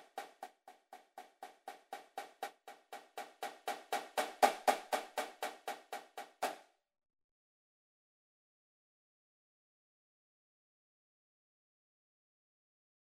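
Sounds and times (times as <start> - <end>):
snare drum at 120 bpm: 0.0 - 6.6.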